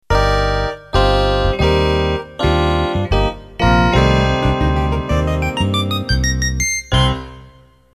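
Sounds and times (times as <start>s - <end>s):
ballroom swing music: 0.1s - 7.5s.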